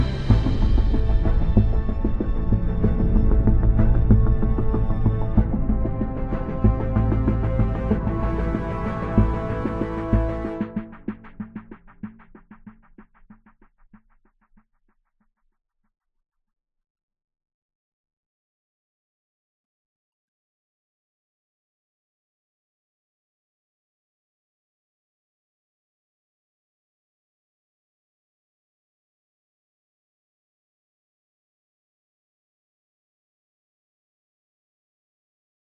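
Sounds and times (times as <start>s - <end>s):
idle ambient music: 0.0s - 12.9s.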